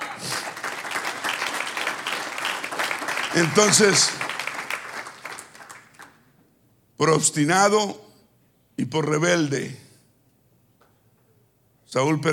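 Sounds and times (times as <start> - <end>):
audience applause: 0.0 - 6.2
speech: 3.3 - 4.3, 7.0 - 8.0, 8.8 - 9.8, 11.9 - 12.3.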